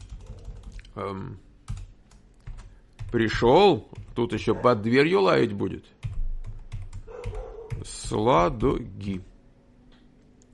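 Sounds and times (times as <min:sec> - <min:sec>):
typing on a computer keyboard: 0:00.0 - 0:00.9, 0:01.7 - 0:03.3, 0:03.9 - 0:04.3, 0:06.0 - 0:08.4
speech: 0:01.0 - 0:01.5, 0:03.1 - 0:06.0, 0:07.2 - 0:09.3.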